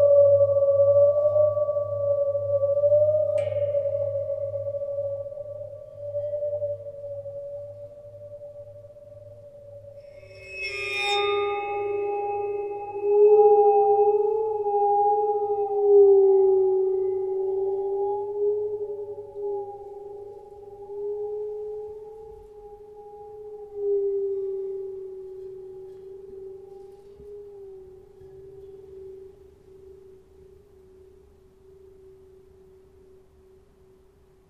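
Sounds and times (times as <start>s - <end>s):
waterphone played with a bow: 0.0s - 33.7s.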